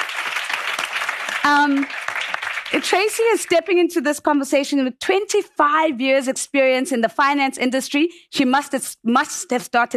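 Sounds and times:
crowd clapping: 0.0 - 3.8
speech: 1.4 - 2.0, 2.7 - 9.9.

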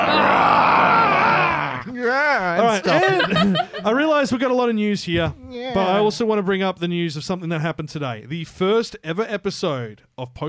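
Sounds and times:
voice imitating garbled zombie scream: 0.0 - 2.6
laughter: 0.0 - 4.2
speech: 2.7 - 10.4.

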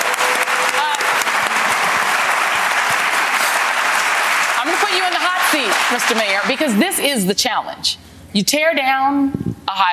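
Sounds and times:
audience round of applause: 0.0 - 7.0
speech: 5.5 - 9.9.

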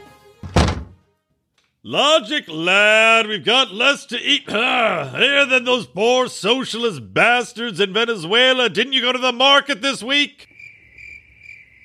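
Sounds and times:
kitchen cabinet doors opening and closing: 0.4 - 1.0
speech: 1.8 - 10.5.

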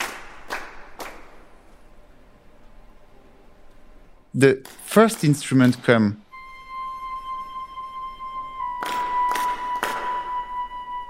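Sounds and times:
orchestra and chorus clapping in rhythm: 0.0 - 1.6, 4.5 - 11.0
low quiet hiss: 0.0 - 8.6
speech: 4.4 - 6.2.

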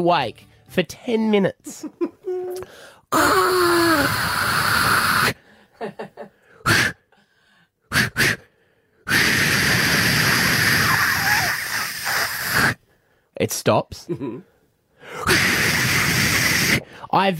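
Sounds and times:
speech: 0.0 - 6.9, 13.4 - 14.5, 16.7 - 17.3
voice imitating insecticide aerosol spray can hissing: 3.2 - 5.4, 6.6 - 7.0, 7.9 - 8.5, 9.1 - 12.8, 15.2 - 16.9.

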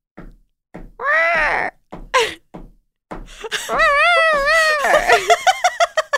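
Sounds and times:
person vocally imitating a bird's drumming riff: 1.0 - 2.4, 3.7 - 5.3
laughter: 3.5 - 6.1.

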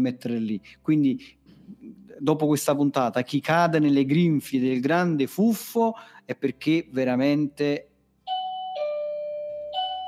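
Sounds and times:
speech: 0.0 - 1.4, 2.2 - 7.9
doorbell ringing: 8.3 - 10.0.

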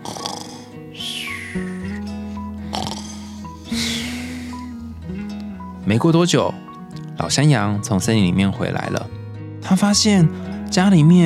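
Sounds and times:
wolf snoring while asleep: 0.0 - 4.8
low musical drone: 0.8 - 5.8
speech: 1.5 - 1.7, 5.9 - 11.2.

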